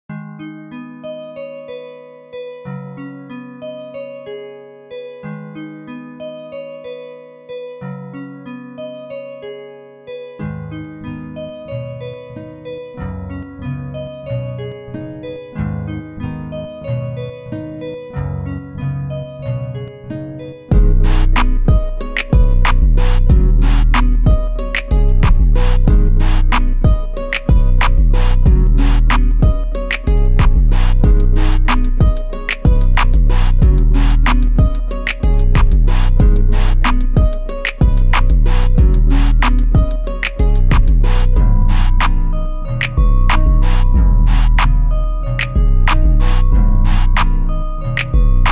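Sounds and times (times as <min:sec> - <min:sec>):
instrumental type beat: 0:20.7 - 0:48.4.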